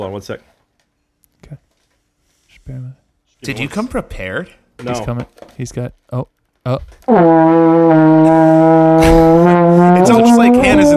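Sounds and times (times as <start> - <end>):
speech: 0.0 - 0.5, 1.4 - 1.6, 2.7 - 8.1
trombone-like fart noise into microphone: 7.1 - 10.9.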